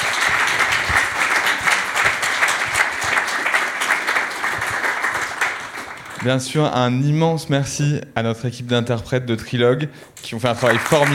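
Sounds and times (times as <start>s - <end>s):
audience applause: 0.0s - 6.5s, 10.4s - 11.1s
speech: 6.2s - 11.1s.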